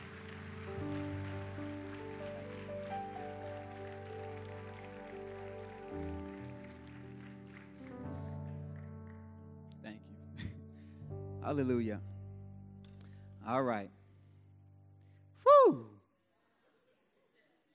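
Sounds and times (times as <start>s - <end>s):
audience clapping hands: 0.0s - 9.8s
speech: 11.5s - 12.1s, 13.5s - 14.0s.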